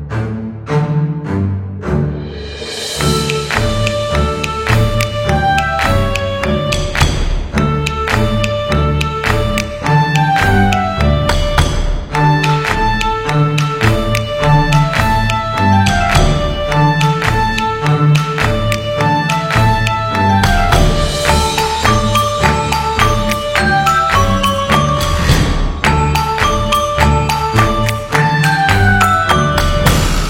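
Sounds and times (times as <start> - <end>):
funny children's game music: 0.1 - 30.2.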